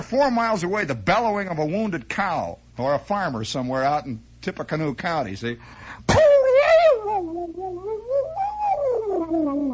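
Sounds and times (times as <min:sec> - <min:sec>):
speech: 0:00.0 - 0:06.3, 0:07.0 - 0:08.4, 0:09.3 - 0:09.7
voice imitating a whistling bullet ricochet: 0:06.1 - 0:09.7.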